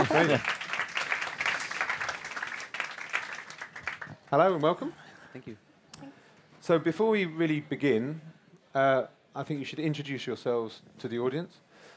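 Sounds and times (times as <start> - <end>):
speech: 0.0 - 0.6, 4.3 - 11.6
audience applause: 0.0 - 4.2.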